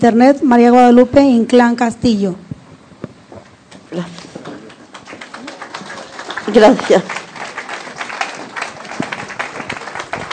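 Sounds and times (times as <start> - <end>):
speech: 0.0 - 2.4, 3.9 - 4.4, 6.5 - 7.2
audience applause: 4.2 - 10.3.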